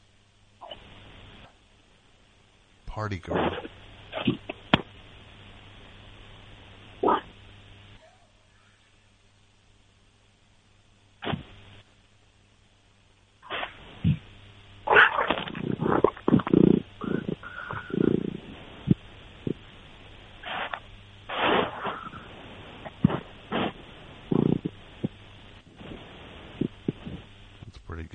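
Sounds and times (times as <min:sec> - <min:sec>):
speech: 0:03.0 - 0:04.4
cat purring: 0:14.9 - 0:19.7, 0:20.4 - 0:27.8.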